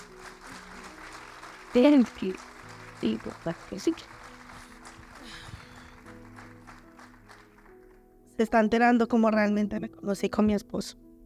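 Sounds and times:
audience applause: 0.0s - 8.0s
speech: 1.7s - 4.2s, 8.4s - 11.0s.

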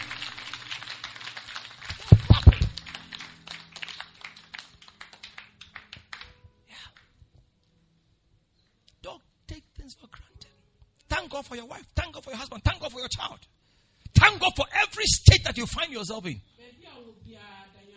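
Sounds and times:
audience clapping hands: 0.0s - 6.4s
speech: 11.4s - 13.6s, 14.2s - 17.6s.

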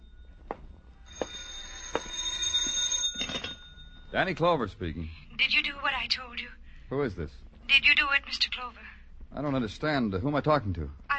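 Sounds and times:
telephone ringing: 0.0s - 4.2s
speech: 4.1s - 11.0s.

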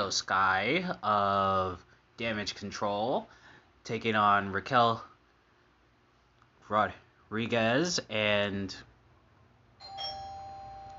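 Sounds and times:
speech: 0.0s - 5.1s, 6.7s - 8.9s
low hum: 0.0s - 10.9s
doorbell chiming: 9.8s - 10.9s.

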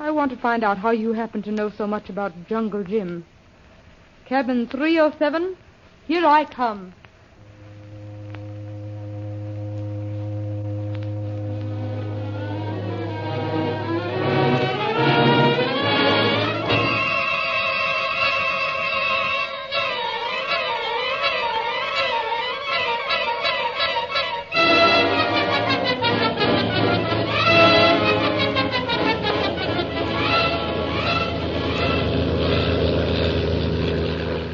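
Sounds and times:
speech: 0.1s - 3.4s, 4.3s - 7.0s
airplane engine roaring in flight: 7.4s - 17.4s, 24.6s - 34.5s
musical passage of wavering sustained tones: 7.4s - 34.5s.

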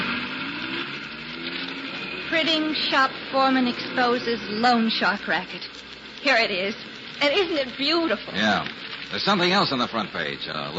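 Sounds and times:
truck engines driving off: 0.0s - 10.7s
speech: 2.3s - 10.7s.

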